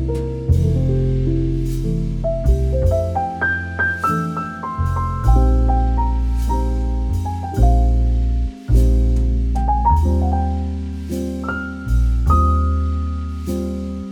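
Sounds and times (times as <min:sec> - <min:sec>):
relaxing romantic jazz podcast music: 0:00.0 - 0:14.1.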